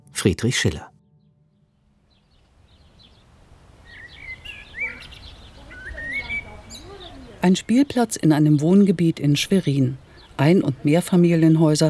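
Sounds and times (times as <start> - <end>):
speech: 0.2 - 0.9, 7.4 - 11.8
birds chirping at a playground in a residential area of Schwerin: 0.4 - 11.8.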